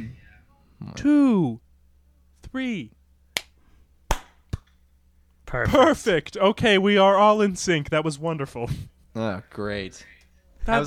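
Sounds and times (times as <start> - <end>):
speech: 0.8 - 1.6, 2.5 - 3.0, 5.5 - 10.8
group clapping in unison on a count: 4.1 - 4.4.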